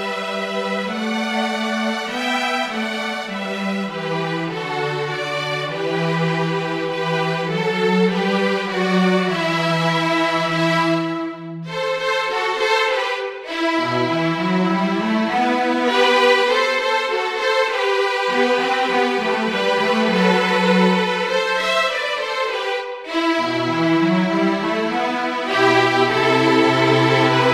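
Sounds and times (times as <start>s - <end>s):
string trio of two violins and cello playing a march: 0.0s - 27.5s.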